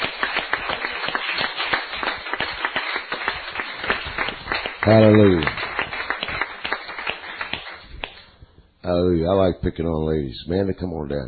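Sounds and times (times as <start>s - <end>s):
audience cheering and clapping: 0.0s - 8.2s
speech: 4.8s - 5.6s, 8.9s - 11.2s.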